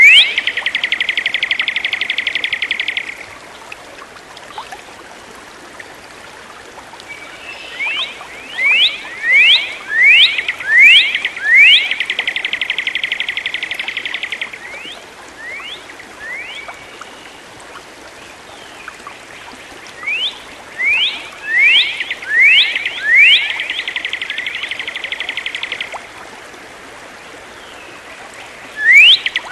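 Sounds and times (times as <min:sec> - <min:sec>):
bird song with rising whistles and dry trill: 0:00.0 - 0:03.2, 0:07.5 - 0:14.5, 0:20.0 - 0:25.8, 0:28.8 - 0:29.5.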